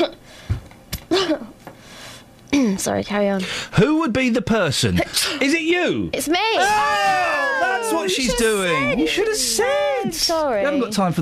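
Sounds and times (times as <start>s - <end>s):
person coughing: 1.1s - 1.6s
speech: 2.5s - 11.2s.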